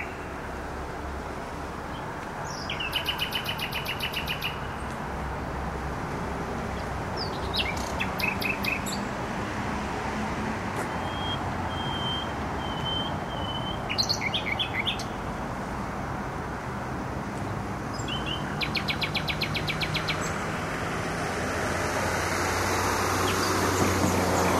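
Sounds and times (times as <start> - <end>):
nightingale song: 0.0 - 0.4, 1.9 - 4.9, 7.2 - 9.1, 10.9 - 15.2, 17.9 - 20.4
loud constant traffic: 0.0 - 24.5.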